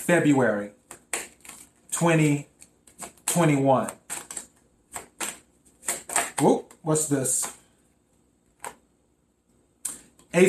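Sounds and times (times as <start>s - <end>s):
speech: 0.1s - 0.8s, 2.0s - 2.5s, 3.3s - 4.0s, 6.4s - 7.6s
tarot cards being shuffled to draw a single card: 0.8s - 7.7s, 8.5s - 8.8s.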